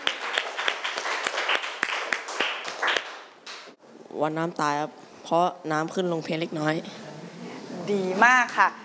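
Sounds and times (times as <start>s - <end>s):
students clapping loudly: 0.0s - 3.8s
speech: 4.1s - 7.1s, 7.9s - 8.8s.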